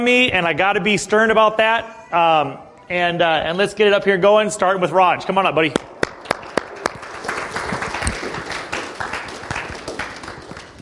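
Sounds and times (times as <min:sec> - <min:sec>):
speech: 0:00.0 - 0:05.9
audience applause: 0:06.0 - 0:10.7.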